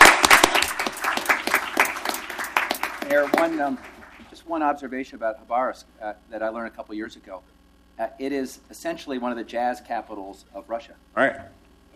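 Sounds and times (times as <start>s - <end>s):
audience applause at a Portland sister-city event with Khabarovsk: 0.0s - 4.3s
speech: 3.1s - 11.9s.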